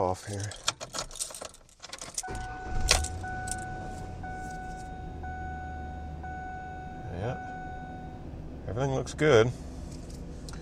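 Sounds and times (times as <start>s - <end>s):
speech: 0.0s - 0.7s, 8.7s - 9.7s
truck engine starting up: 2.2s - 6.9s.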